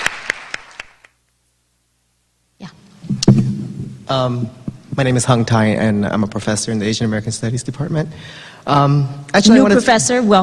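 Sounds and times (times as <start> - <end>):
sharp claps: 0.0 - 1.2
speech: 4.1 - 10.4.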